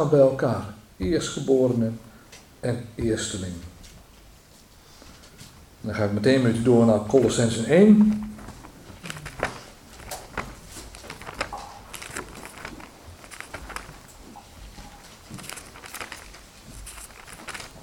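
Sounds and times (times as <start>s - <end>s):
speech: 0.0s - 3.7s, 5.8s - 8.3s
pages of a Bible turning: 8.0s - 17.8s.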